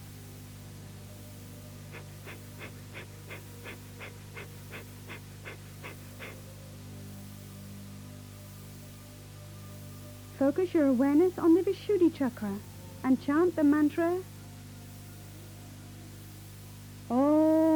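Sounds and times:
quiet breathing: 1.1 - 6.8
Kapalabhati yogic breathing forceful nasal exhalations: 1.9 - 6.4
speech: 10.4 - 14.3.

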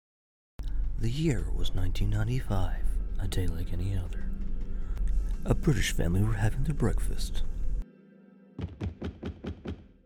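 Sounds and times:
steady low hum: 0.6 - 7.9
speech: 1.0 - 4.5, 5.4 - 7.5, 8.6 - 9.1
knocking on a door: 8.6 - 9.9.

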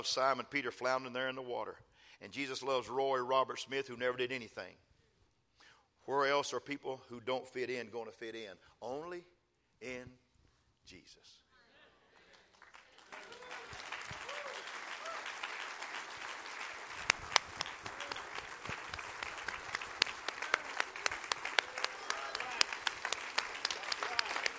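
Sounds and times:
speech: 0.0 - 4.9, 6.1 - 10.2, 10.9 - 11.4
audience clapping: 12.2 - 24.5.

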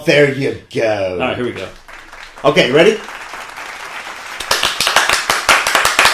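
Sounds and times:
speech: 0.0 - 1.8, 2.4 - 3.2
applause and cheering bumper effect: 1.6 - 6.1.

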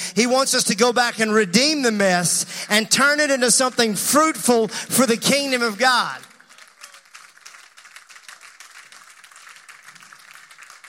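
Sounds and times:
speech: 0.2 - 6.3
audience clapping: 5.6 - 10.8.

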